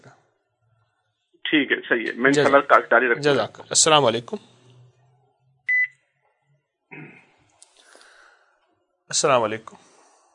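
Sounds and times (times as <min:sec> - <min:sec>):
speech: 0:01.5 - 0:04.6, 0:09.1 - 0:09.9
high electronic beep on a phone line as a radio call-in caller is cut off: 0:05.7 - 0:05.9.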